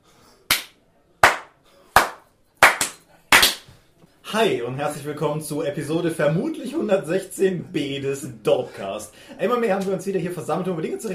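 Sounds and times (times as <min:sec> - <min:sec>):
hand claps to synchronise recordings: 0:00.5 - 0:03.7
speech: 0:04.3 - 0:11.1.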